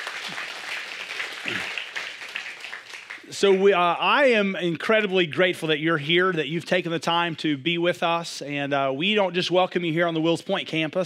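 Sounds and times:
audience applause: 0.0 - 3.5
speech: 3.3 - 11.0.

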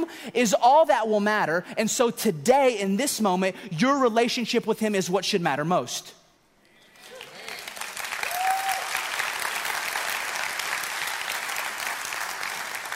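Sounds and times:
speech: 0.1 - 6.2
recorded applause track from audience: 6.8 - 12.9.

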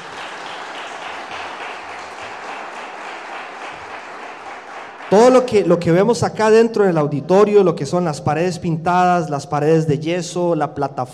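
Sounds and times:
audience applause: 0.0 - 5.7
speech: 5.1 - 11.1.

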